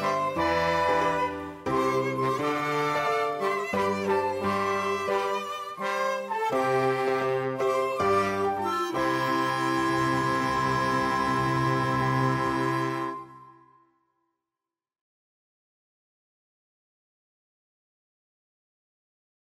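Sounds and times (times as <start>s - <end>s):
instrumental music: 0.0s - 14.0s.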